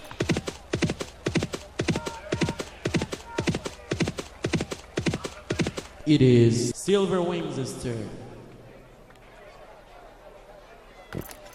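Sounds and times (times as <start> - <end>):
galloping horse hoofbeats in an audio horse racing video game: 0.0 - 6.0
speech: 6.1 - 8.2.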